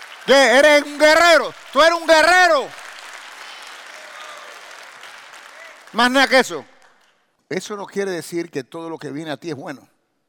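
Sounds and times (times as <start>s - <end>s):
audience applause: 0.0s - 7.1s
speech: 0.2s - 2.8s, 5.9s - 6.7s, 7.5s - 9.9s.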